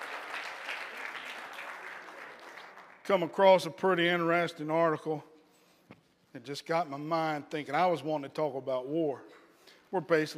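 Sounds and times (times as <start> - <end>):
crowd clapping: 0.0 - 3.4
speech: 3.1 - 5.3, 6.4 - 10.3.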